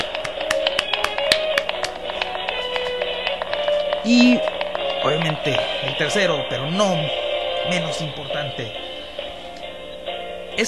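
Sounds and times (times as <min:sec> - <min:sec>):
applause: 0:00.0 - 0:06.3
speech: 0:04.0 - 0:08.9.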